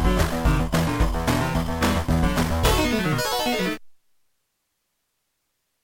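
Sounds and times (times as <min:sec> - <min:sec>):
synthesizer beeps: 0:00.2 - 0:03.8.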